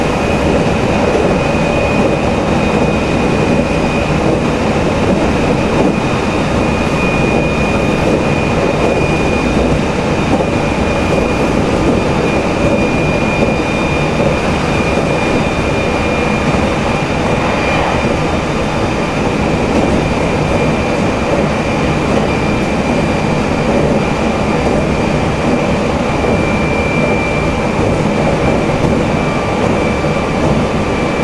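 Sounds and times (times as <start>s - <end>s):
Meitetsu 3300 train motor: 0.0s - 31.2s.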